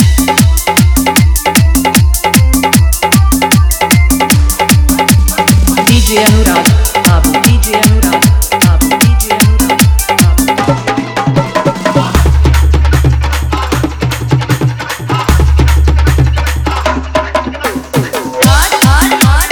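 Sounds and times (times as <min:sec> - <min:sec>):
dholki bass dance mix Hindi DJ song: 0:00.0 - 0:19.5.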